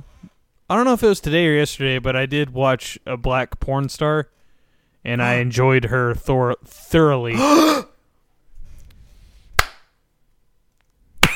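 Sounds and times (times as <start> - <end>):
speech: 0.7 - 4.4, 5.0 - 7.9
slow clap: 9.6 - 9.9.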